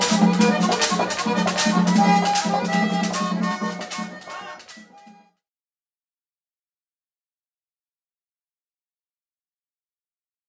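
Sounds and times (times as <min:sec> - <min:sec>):
merengue music: 0:00.0 - 0:05.4.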